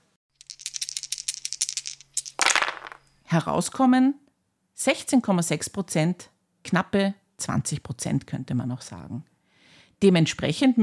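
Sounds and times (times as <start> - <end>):
dice rattling in a cup and tumbling out: 0.4 - 3.0
speech: 3.3 - 4.2, 4.8 - 9.3, 10.0 - 10.8.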